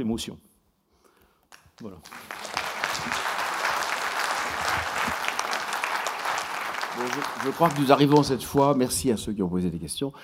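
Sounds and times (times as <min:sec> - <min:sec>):
speech: 0:00.0 - 0:00.5, 0:01.8 - 0:02.4, 0:03.0 - 0:03.4, 0:07.0 - 0:10.2
audience applause: 0:01.8 - 0:08.8.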